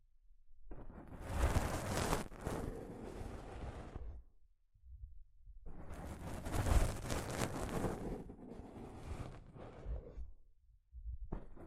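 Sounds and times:
soft fabric brushing across a microphone: 1.0 - 4.2, 5.8 - 10.4.

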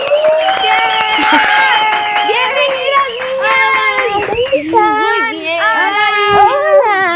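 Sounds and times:
audience applause: 0.0 - 5.3
high whooping cheers and excited voices: 0.0 - 7.0.

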